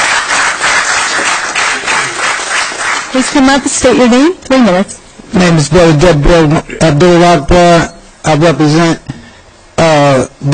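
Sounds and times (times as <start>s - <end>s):
audience clapping: 0.0s - 3.8s
speech: 3.1s - 9.1s, 9.9s - 10.5s.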